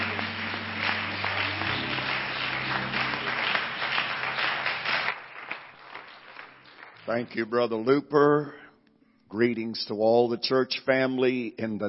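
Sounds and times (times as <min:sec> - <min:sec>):
audience clapping hands in praise: 0:00.0 - 0:07.8
speech: 0:07.1 - 0:08.6, 0:09.3 - 0:11.8.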